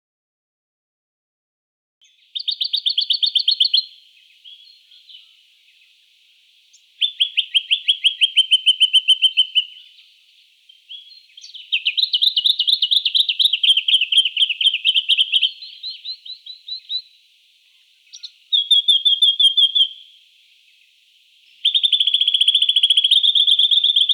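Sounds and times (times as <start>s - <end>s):
Jacky winter chirping: 2.0s - 5.8s, 6.7s - 10.1s, 10.7s - 17.2s, 18.0s - 20.2s, 21.4s - 24.1s.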